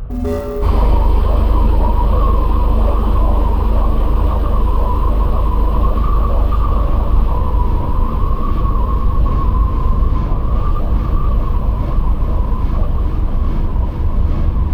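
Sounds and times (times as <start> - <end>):
science fiction spaceship sound effects: 0.1 - 14.7.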